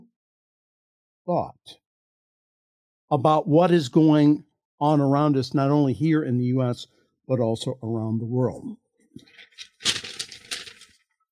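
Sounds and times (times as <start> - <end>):
speech: 1.3 - 1.8, 3.1 - 10.0
paper being rattled and crumpled: 9.2 - 11.0.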